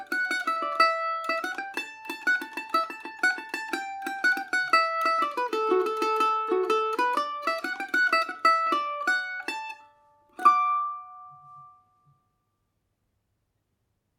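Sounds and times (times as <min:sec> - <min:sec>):
Irish mandolin tune in D major: 0:00.0 - 0:12.2.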